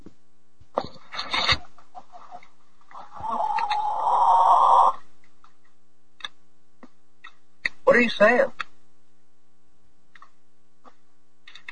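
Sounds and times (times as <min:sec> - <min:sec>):
egg-laying hen clucking and cackling: 0:01.9 - 0:05.0
speech: 0:08.0 - 0:08.6.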